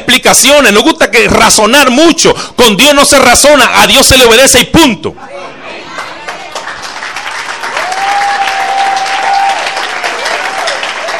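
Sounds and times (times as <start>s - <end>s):
speech: 0.2s - 5.5s
congregation applauding during a church sermon: 6.0s - 11.1s.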